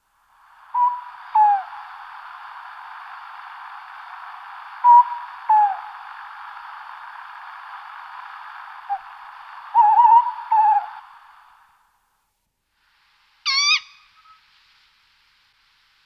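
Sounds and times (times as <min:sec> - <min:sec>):
Tawny Owl Strix aluco hooting: 0:00.4 - 0:11.6, 0:13.4 - 0:14.5.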